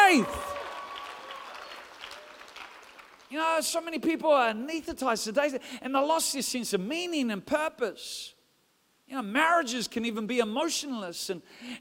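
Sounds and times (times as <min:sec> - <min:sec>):
audience clapping: 0:00.0 - 0:03.4
speech: 0:00.2 - 0:00.4, 0:03.4 - 0:08.4, 0:09.1 - 0:11.7.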